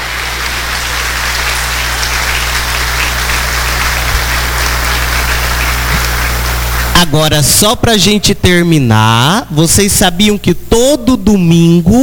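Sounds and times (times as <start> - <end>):
applause for the children: 0.0 - 7.0
speech: 7.0 - 12.0.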